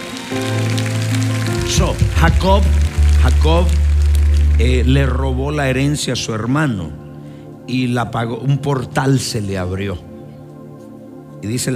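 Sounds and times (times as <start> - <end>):
audience applauding: 0.0 - 6.0
speech: 1.7 - 3.9, 4.6 - 7.0, 7.7 - 10.1, 11.4 - 11.7.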